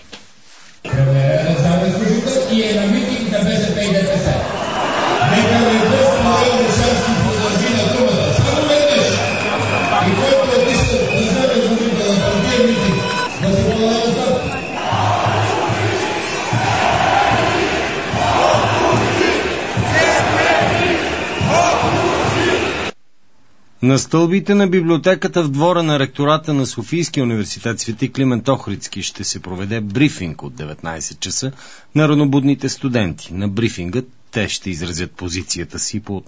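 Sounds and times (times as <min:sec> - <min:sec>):
crowd at a GERB political rally in Plovdiv: 0:00.9 - 0:23.0
speech: 0:24.0 - 0:36.2.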